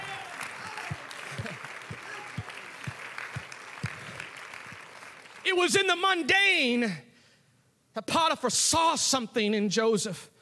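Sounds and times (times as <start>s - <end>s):
crowd noise: 0.0s - 5.7s
audience clapping in a steady rhythmic beat: 0.0s - 6.2s
speech: 5.5s - 7.1s, 8.0s - 10.3s.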